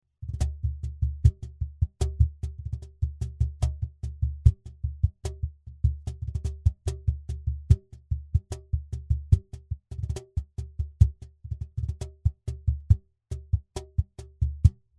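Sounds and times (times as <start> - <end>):
classic cajon: 0.2 - 14.8.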